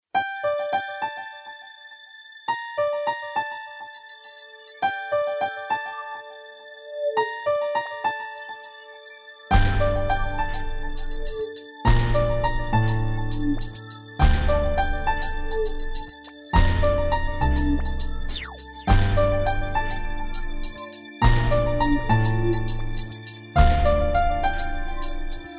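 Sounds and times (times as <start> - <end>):
piano: 0.1 - 25.5.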